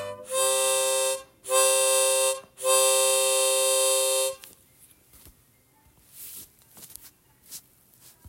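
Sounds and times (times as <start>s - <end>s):
harmonica: 0.0s - 4.5s.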